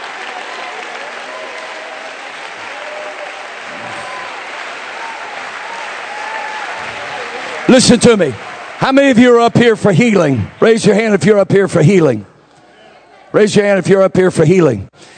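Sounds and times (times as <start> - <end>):
audience clapping hands: 0.0 - 11.5
speech: 7.7 - 12.3, 13.3 - 15.1.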